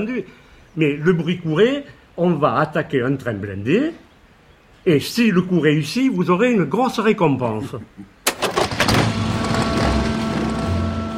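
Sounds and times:
speech: 0:00.0 - 0:04.0, 0:04.8 - 0:08.2
engines of sidecars, motorcycles, cars and trucks running at Neuvic-sur-Lille: 0:08.6 - 0:11.1.

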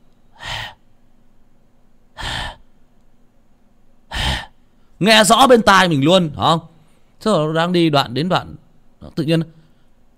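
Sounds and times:
person imitating irregular gasping breaths: 0:00.3 - 0:00.9, 0:02.2 - 0:02.8, 0:04.1 - 0:04.8
speech: 0:05.0 - 0:09.6.

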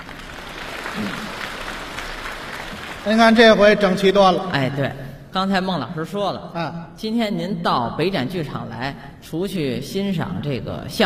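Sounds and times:
theater audience applause: 0:00.0 - 0:04.3
speech: 0:01.0 - 0:01.3, 0:03.0 - 0:11.0.

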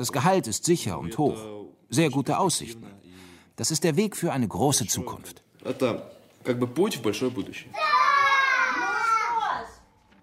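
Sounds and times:
speech: 0:00.0 - 0:03.0, 0:03.6 - 0:07.9
cheerful shouting: 0:07.7 - 0:09.8
children's voices: 0:07.7 - 0:10.0.

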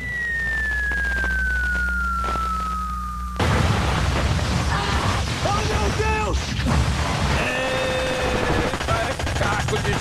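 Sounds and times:
falling bomb whistle sound effect: 0:00.0 - 0:03.6
bomb explosion sound effect: 0:03.4 - 0:09.9.

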